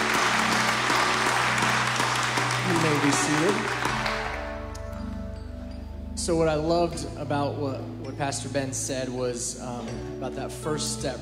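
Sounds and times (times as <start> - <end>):
audience applauding: 0.0 - 4.9
speech: 2.8 - 3.9, 6.3 - 11.2.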